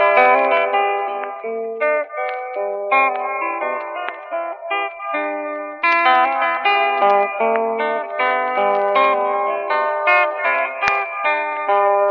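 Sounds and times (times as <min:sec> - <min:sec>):
phonk guitar loop: 0:00.0 - 0:12.0.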